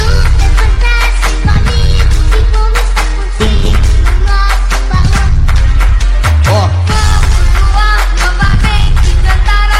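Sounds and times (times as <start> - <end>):
funk remix: 0.0 - 9.7.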